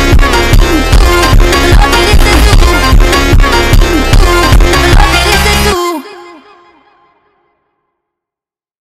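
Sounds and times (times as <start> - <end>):
sped up phonk music: 0.0 - 6.9.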